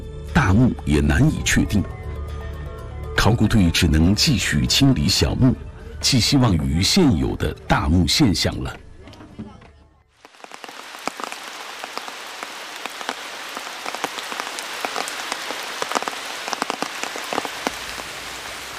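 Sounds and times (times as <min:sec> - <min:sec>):
speech: 0:00.4 - 0:02.0, 0:03.2 - 0:08.8
rain falling on a surface: 0:10.2 - 0:18.7.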